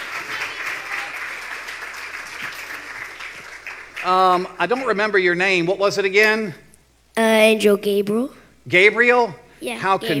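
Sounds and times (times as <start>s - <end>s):
audience applause: 0.0s - 5.0s
speech: 4.0s - 6.6s, 7.2s - 10.1s.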